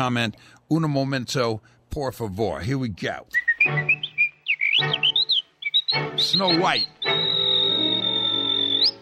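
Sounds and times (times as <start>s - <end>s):
speech: 0.0s - 4.0s, 4.8s - 5.1s, 6.2s - 7.6s
whistled song recording: 3.3s - 9.0s.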